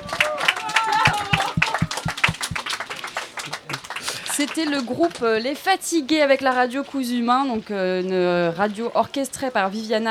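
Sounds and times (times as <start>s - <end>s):
audience applause: 0.0s - 4.9s
speech: 4.4s - 10.0s.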